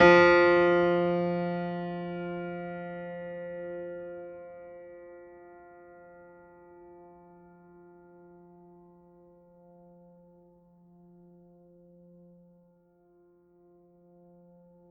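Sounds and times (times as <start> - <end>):
classical piano note F3: 0.0 - 7.7.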